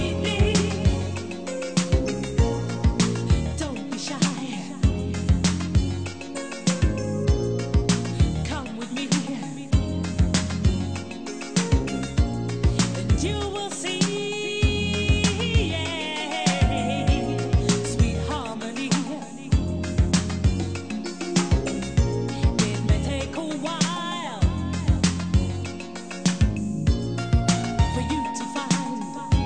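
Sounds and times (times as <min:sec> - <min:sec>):
disco music: 0:00.0 - 0:29.4.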